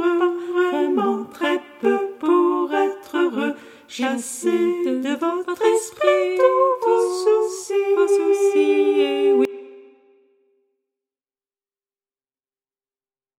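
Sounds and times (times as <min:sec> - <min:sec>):
choir singing: 0:00.0 - 0:10.2.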